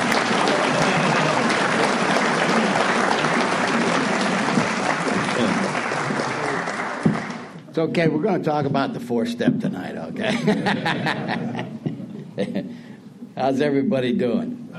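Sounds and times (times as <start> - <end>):
laughter: 0.0 - 6.7, 10.2 - 12.7
audience applause welcoming a speaker: 0.0 - 7.6
speech: 7.8 - 11.6, 12.4 - 12.8, 13.4 - 14.6.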